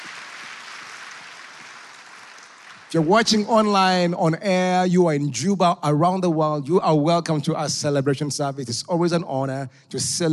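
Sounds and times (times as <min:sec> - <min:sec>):
church congregation applause at a celebration service: 0:00.0 - 0:04.0
speech: 0:02.9 - 0:10.3.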